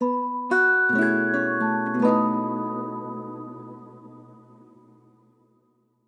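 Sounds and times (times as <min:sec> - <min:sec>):
quest start jingle: 0:00.6 - 0:05.0.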